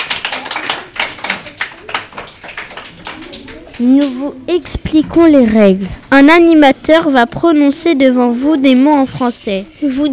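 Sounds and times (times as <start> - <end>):
audience applause: 0.0 - 4.0
speech: 3.8 - 10.1.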